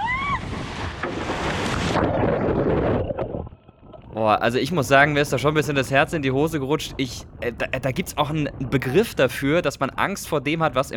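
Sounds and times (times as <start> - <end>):
open ocean water rushing heard from a small boat: 0.0 - 7.4
wind: 0.0 - 10.9
speech: 4.2 - 10.9.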